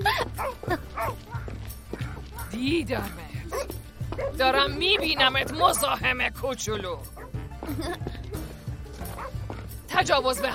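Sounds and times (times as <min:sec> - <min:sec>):
dog barking and yipping: 0:00.3 - 0:02.6, 0:03.4 - 0:06.2, 0:07.1 - 0:07.4, 0:09.1 - 0:10.5
speech: 0:02.6 - 0:03.2, 0:04.3 - 0:08.2, 0:10.0 - 0:10.5.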